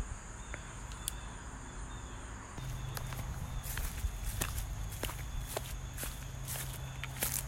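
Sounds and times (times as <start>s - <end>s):
faint insects chirring: 0.0s - 7.4s
footsteps walking along an old overgrown path: 2.6s - 7.4s.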